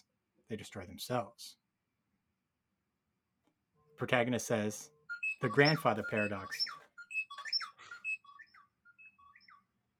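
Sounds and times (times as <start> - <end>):
speech: 0.5 - 1.6, 4.0 - 6.8
mobile phone electronic ringtone melody: 4.9 - 8.4.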